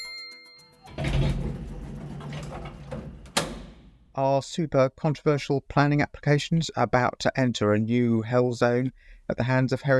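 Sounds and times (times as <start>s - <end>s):
elevator doors closing: 0.8s - 4.1s
speech: 4.2s - 9.9s.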